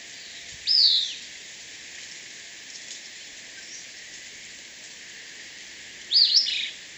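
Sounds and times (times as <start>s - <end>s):
Caribbean Elaenia calling: 0.2s - 1.3s, 6.1s - 6.9s.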